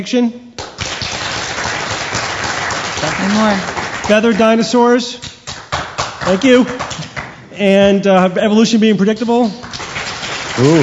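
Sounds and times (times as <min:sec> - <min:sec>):
speech: 0:00.0 - 0:00.5, 0:03.0 - 0:05.3, 0:06.3 - 0:06.8, 0:07.6 - 0:09.7, 0:10.6 - 0:10.8
audience applauding: 0:00.6 - 0:04.6, 0:05.5 - 0:07.4, 0:09.6 - 0:10.8.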